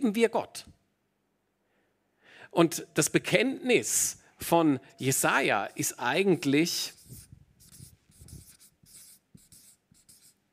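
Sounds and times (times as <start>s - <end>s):
speech: 0.0s - 0.7s, 2.5s - 7.2s
writing on a board: 6.9s - 10.5s.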